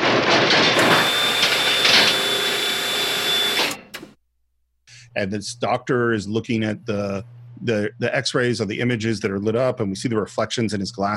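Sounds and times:
medical machines banging and clanging: 0:00.0 - 0:04.1
speech: 0:05.2 - 0:11.1.

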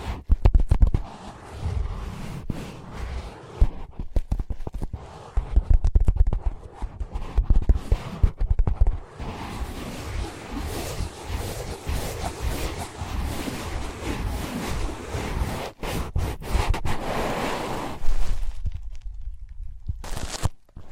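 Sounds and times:
rough rubbing strokes on ear pads: 0:00.0 - 0:18.6
tapping on ear pads: 0:00.2 - 0:01.0, 0:04.0 - 0:04.9.

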